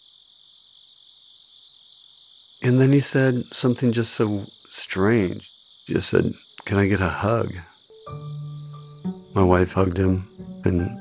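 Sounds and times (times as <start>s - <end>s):
chirping insects in the night air: 0.0s - 11.0s
speech: 2.6s - 8.2s, 9.4s - 11.0s.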